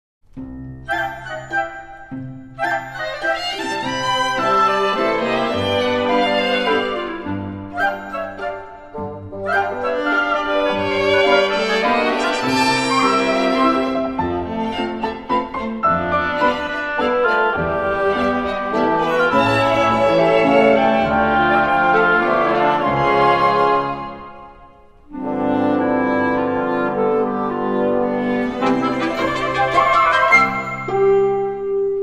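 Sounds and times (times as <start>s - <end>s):
chamber orchestra minuet: 0.4s - 32.0s.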